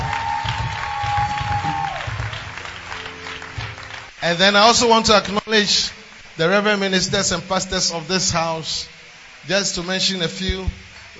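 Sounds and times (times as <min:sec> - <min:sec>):
audience clapping: 0:00.0 - 0:04.3
faint sustained tone: 0:02.8 - 0:11.1
speech: 0:04.2 - 0:10.8.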